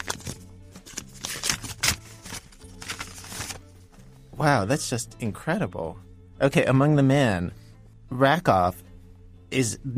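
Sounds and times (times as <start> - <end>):
envelope being opened: 0.0 - 3.6
faint paper rustling and crinkling from an envelope: 0.0 - 3.6
speech: 4.4 - 8.8, 9.5 - 9.9.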